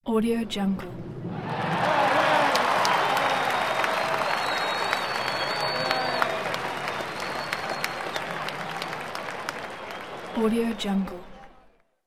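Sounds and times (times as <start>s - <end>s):
ovation from fans: 1.0s - 11.8s.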